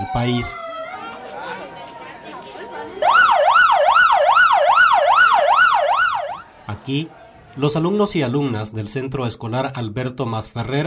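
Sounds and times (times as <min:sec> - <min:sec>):
earthquake drill alarm siren: 0:00.0 - 0:01.2, 0:03.0 - 0:06.4
speech: 0:00.1 - 0:00.6, 0:06.7 - 0:10.8.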